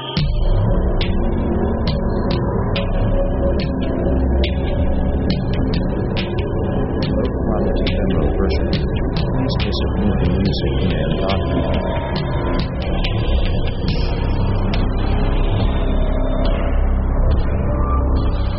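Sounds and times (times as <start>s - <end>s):
sci-fi punch: 0.2s - 18.5s.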